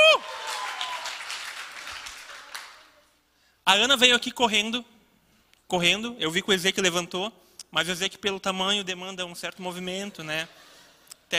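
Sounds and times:
audience applause: 0.0s - 3.1s
speech: 3.7s - 5.0s, 5.7s - 10.7s.

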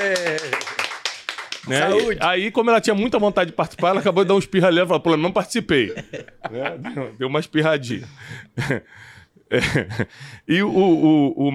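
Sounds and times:
speech: 0.0s - 0.7s, 1.6s - 11.5s
applause for a guest: 0.0s - 2.2s
laughter: 3.6s - 7.3s, 8.0s - 10.2s.

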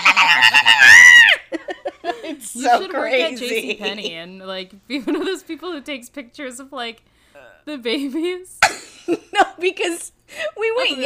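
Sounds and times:
person screaming sillily to make babies smile: 0.0s - 1.5s
speech: 0.3s - 0.9s, 2.4s - 11.0s.

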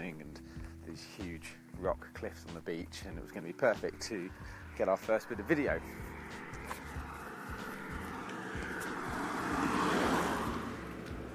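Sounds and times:
speech: 0.2s - 6.5s
car driving past: 4.3s - 11.3s.

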